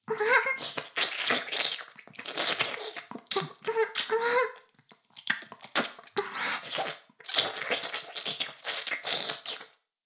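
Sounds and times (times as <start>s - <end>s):
ear licking sounds: 0.6s - 9.8s.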